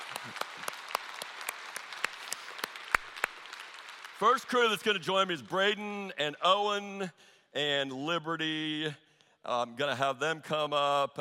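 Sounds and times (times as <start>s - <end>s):
audience clapping: 0.0s - 5.9s
speech: 4.2s - 11.1s.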